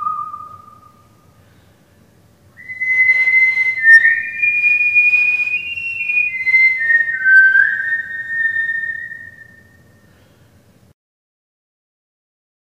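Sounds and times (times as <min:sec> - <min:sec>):
person whistling: 0:00.0 - 0:01.1, 0:02.6 - 0:09.8.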